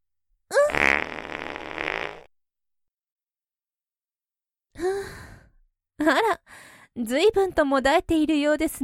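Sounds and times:
fart: 0.6s - 2.3s
speech: 6.0s - 6.4s, 7.0s - 8.8s.

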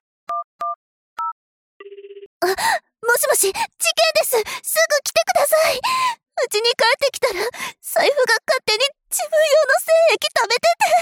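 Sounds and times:
telephone keypad dialing beeps while calling the police: 0.3s - 2.3s
speech: 2.7s - 11.0s.

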